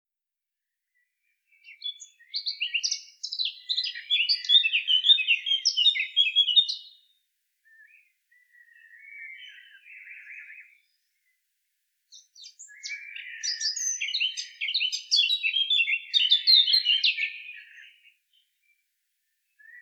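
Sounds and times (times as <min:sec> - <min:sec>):
Eurasian blackcap Sylvia atricapilla singing: 0:01.5 - 0:07.1, 0:07.7 - 0:11.4, 0:12.1 - 0:18.4, 0:19.6 - 0:19.8.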